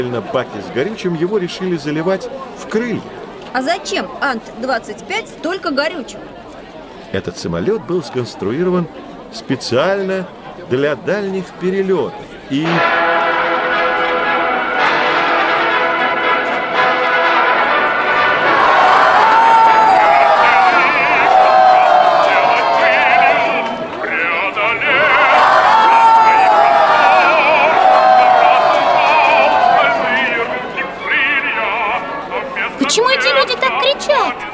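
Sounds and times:
speech: 0:00.0 - 0:06.4, 0:07.1 - 0:13.0
crowd cheering to welcome Chkalov's ANT-25 flight crew: 0:12.6 - 0:34.5
narrator talking: 0:32.6 - 0:34.4.

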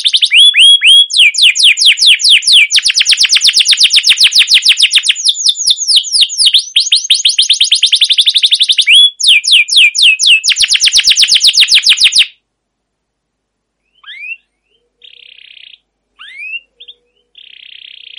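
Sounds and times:
canary singing long rolling trills: 0:00.0 - 0:12.4, 0:13.9 - 0:18.1.

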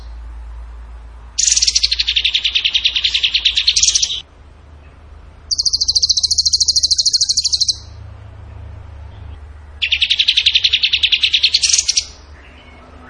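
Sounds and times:
bird trilling: 0:01.4 - 0:04.3, 0:05.5 - 0:08.0, 0:09.8 - 0:13.0.

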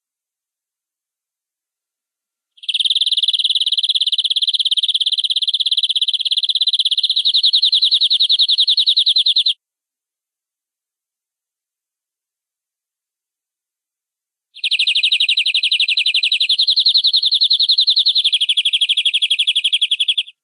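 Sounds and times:
canary rolling trill song: 0:02.6 - 0:09.6, 0:14.6 - 0:20.4.

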